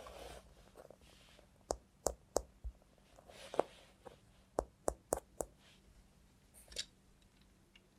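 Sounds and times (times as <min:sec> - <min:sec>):
robot hand taps, clicks and scrapes: 0:01.7 - 0:02.8, 0:04.5 - 0:05.6.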